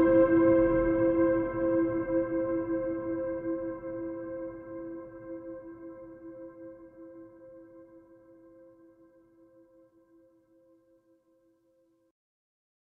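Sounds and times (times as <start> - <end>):
ambient melody: 0.0 - 9.7.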